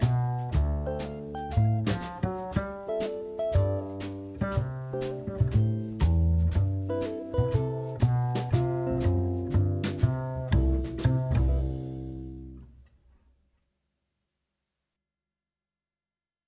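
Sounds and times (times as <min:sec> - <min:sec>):
II V I backing track in C: 0:00.0 - 0:12.7.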